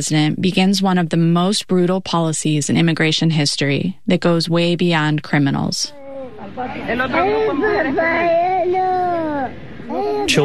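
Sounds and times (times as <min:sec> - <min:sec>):
speech: 0:00.0 - 0:06.0, 0:06.6 - 0:10.4
faint small voices murmuring: 0:05.9 - 0:10.4
young children crying after family separation: 0:05.9 - 0:10.4.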